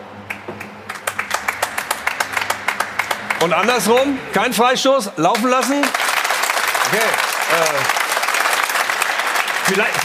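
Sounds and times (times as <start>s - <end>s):
studio audience clapping: 0.2s - 4.6s, 5.2s - 10.0s
speech: 3.4s - 6.0s, 6.9s - 8.0s, 9.7s - 10.0s.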